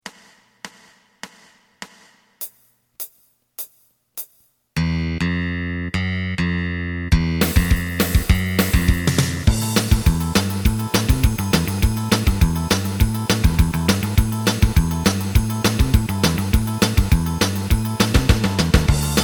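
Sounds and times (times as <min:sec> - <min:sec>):
lead melody: 0:04.8 - 0:19.2.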